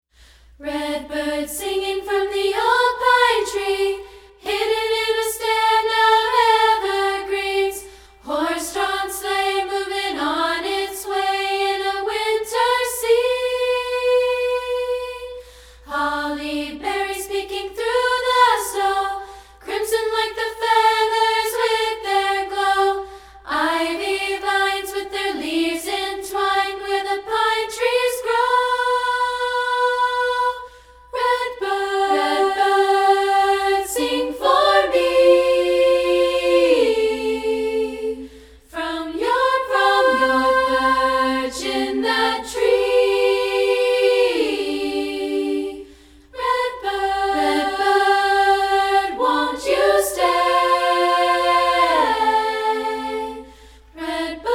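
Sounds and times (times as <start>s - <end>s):
a cappella singing: 0.0s - 54.5s.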